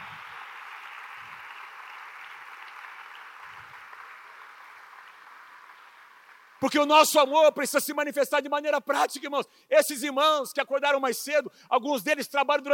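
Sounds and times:
audience applause: 0.0 - 6.7
speech: 6.6 - 12.7.

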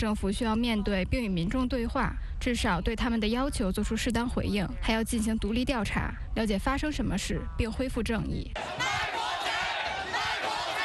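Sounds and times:
speech: 0.0 - 9.0
protest crowd shouting slogans: 8.6 - 10.8.

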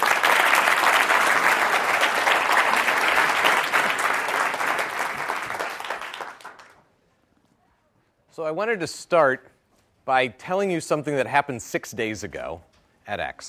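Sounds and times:
audience applauding a speaker's introduction at a talk: 0.0 - 6.8
speech: 8.4 - 9.5, 10.1 - 13.4.

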